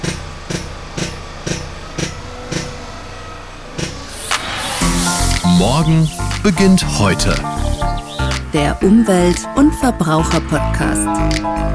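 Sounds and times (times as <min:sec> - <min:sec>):
sharp rhythmic knocks: 0:00.0 - 0:02.9, 0:03.7 - 0:11.7
drilling rig running at a groundwater well: 0:00.0 - 0:10.0
hissing grinding noise: 0:03.6 - 0:08.5
speech: 0:05.6 - 0:07.6, 0:08.5 - 0:11.7.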